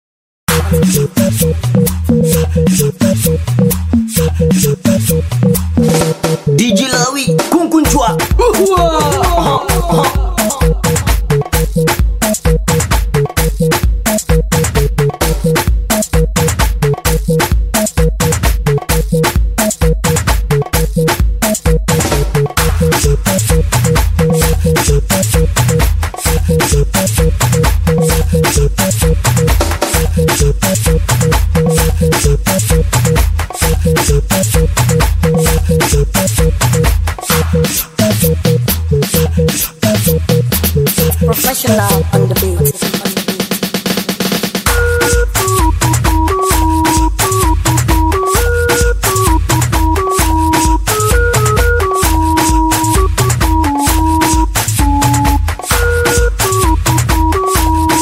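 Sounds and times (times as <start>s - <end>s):
instrumental music: 0.5s - 57.9s
laughter: 8.4s - 11.1s.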